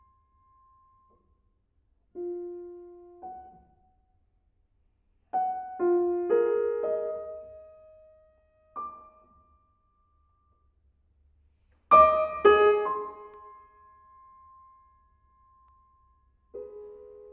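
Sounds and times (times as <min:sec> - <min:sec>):
piano piece: 0:02.1 - 0:04.0, 0:05.3 - 0:10.6, 0:11.8 - 0:17.3.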